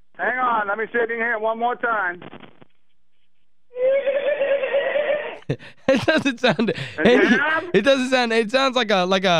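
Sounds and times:
speech: 0:00.3 - 0:02.4, 0:05.5 - 0:09.3
horse neighing in barn: 0:03.8 - 0:05.4
laughter: 0:04.2 - 0:08.1.

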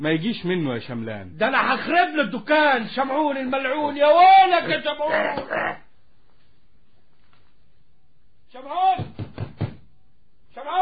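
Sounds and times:
speech: 0:00.0 - 0:05.8, 0:08.6 - 0:09.1
knocking on a door: 0:09.0 - 0:09.9.

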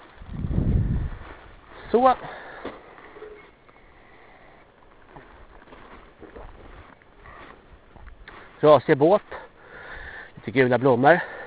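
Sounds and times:
heavy breathing: 0:01.7 - 0:04.9, 0:09.3 - 0:10.4, 0:11.2 - 0:11.4
speech: 0:01.9 - 0:02.8, 0:08.6 - 0:09.4, 0:10.5 - 0:11.3.

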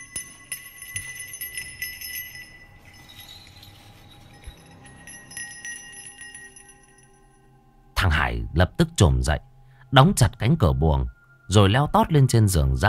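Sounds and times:
small bell jingling: 0:00.0 - 0:07.5
speech: 0:08.0 - 0:12.8.

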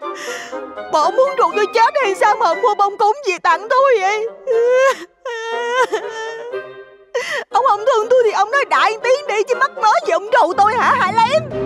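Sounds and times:
speech: 0:00.2 - 0:06.6, 0:07.4 - 0:11.6
woman wailing and crying: 0:04.1 - 0:09.0.

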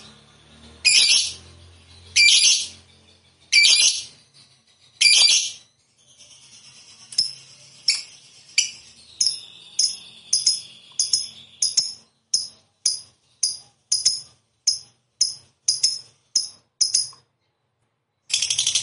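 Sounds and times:
fighter-type lovebird chattering trill: 0:00.8 - 0:01.4, 0:02.1 - 0:02.8, 0:03.5 - 0:04.2, 0:05.0 - 0:05.6, 0:06.6 - 0:17.2.

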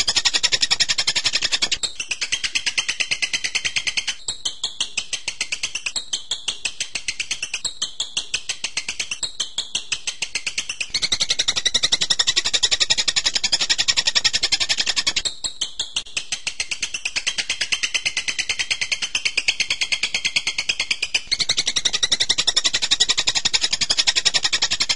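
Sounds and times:
songbird song: 0:00.0 - 0:24.9.

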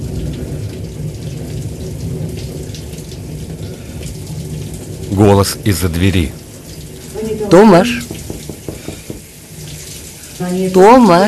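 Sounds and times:
shower running: 0:00.0 - 0:11.2
speech: 0:05.1 - 0:06.4, 0:07.4 - 0:08.2, 0:10.4 - 0:11.2.

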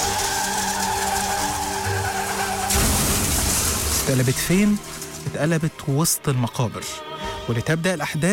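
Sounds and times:
car tires skidding: 0:00.0 - 0:05.2
speech: 0:04.1 - 0:08.3.

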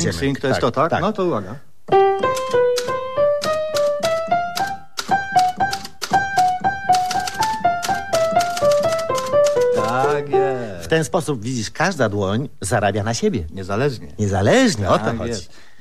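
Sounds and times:
speech: 0:00.0 - 0:02.5, 0:10.9 - 0:15.7
simple piano melody: 0:01.9 - 0:11.2
typewriter keys clacking while copying out song lyrics: 0:02.2 - 0:10.2.

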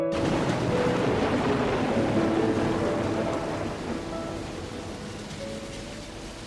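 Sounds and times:
low rumbling: 0:00.1 - 0:05.1
fine drizzle of rain in Brussels: 0:00.1 - 0:06.4.

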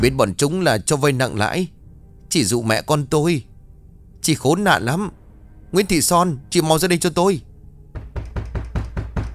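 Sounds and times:
speech: 0:00.0 - 0:03.5, 0:04.2 - 0:07.5
banging on a door: 0:07.9 - 0:09.3.

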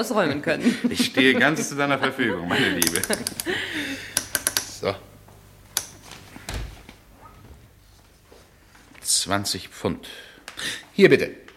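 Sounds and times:
speech: 0:00.0 - 0:04.1, 0:04.8 - 0:05.1, 0:09.1 - 0:11.4
laughter: 0:00.2 - 0:05.0
safe lock clicking: 0:04.2 - 0:04.8.

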